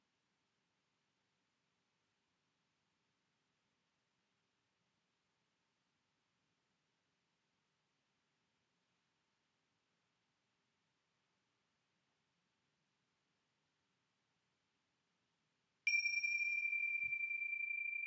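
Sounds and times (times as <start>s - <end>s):
bells: 15.9s - 18.0s.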